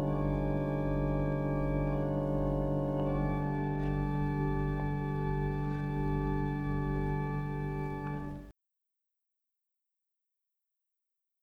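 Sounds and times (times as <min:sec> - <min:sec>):
organ improvisation: 0:00.0 - 0:08.4.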